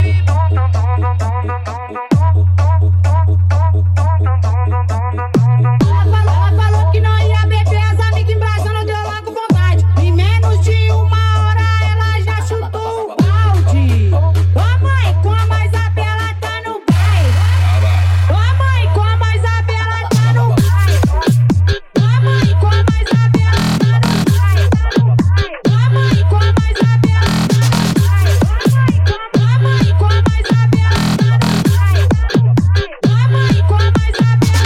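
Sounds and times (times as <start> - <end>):
funk bass: 0.0 - 34.6.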